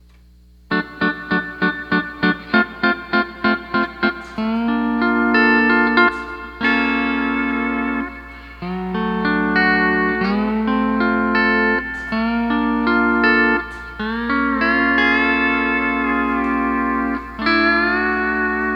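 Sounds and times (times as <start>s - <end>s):
nightlife music: 0.7s - 18.7s.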